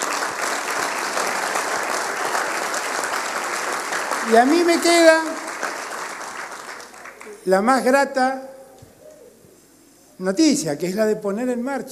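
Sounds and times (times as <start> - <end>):
audience applause: 0.0 - 7.4
speech: 4.3 - 5.4, 7.4 - 8.5, 10.2 - 11.8.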